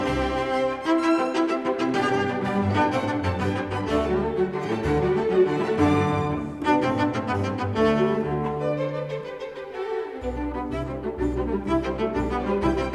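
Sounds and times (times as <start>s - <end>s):
cello and strings ensemble: 0.0s - 12.9s.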